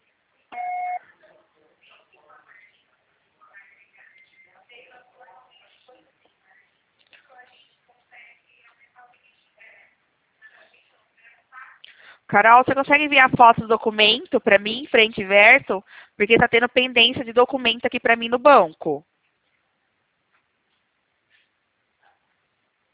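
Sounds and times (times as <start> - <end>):
voicemail beep tone: 0.6 - 1.0
speech: 12.3 - 19.1.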